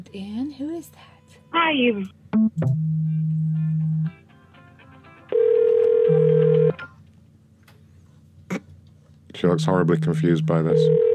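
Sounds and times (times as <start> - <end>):
speech: 0.0 - 3.4, 9.4 - 11.1
electronic telephone ringtone for repeated incoming calls: 5.3 - 6.8, 10.5 - 11.1.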